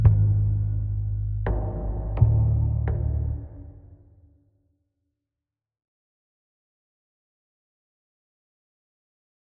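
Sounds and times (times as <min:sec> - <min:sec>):
tension music: 0:00.0 - 0:04.0.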